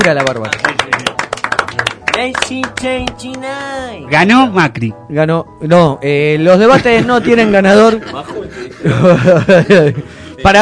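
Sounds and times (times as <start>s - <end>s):
speech: 0.0s - 0.7s, 2.2s - 10.5s
scattered hand claps from a small group: 0.0s - 3.4s
laughter: 6.7s - 10.1s.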